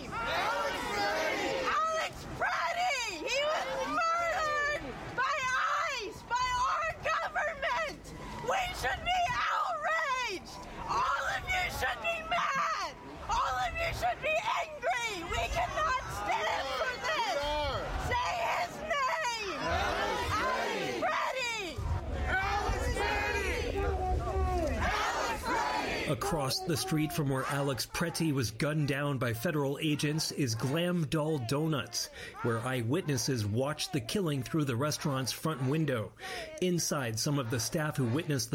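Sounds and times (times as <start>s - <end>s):
protest crowd chanting at street intersection: 0.0s - 38.5s
speech: 26.3s - 38.5s.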